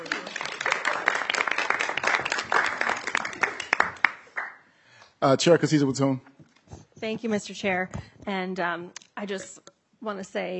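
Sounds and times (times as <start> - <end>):
applause from the room: 0.0 - 4.7
speech: 5.2 - 6.3, 7.0 - 10.5.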